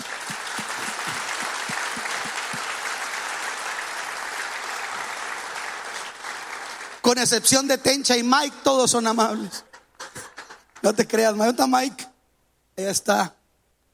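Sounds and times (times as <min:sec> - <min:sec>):
audience applause: 0:00.0 - 0:07.0
speech: 0:07.1 - 0:09.7, 0:10.8 - 0:12.0, 0:12.8 - 0:13.4.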